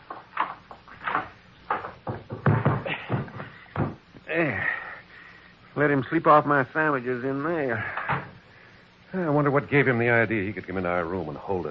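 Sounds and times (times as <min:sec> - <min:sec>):
linen closet door opening and closing: 0:00.0 - 0:04.0, 0:07.9 - 0:08.4
speech: 0:04.4 - 0:04.7, 0:05.8 - 0:08.0, 0:09.1 - 0:11.6.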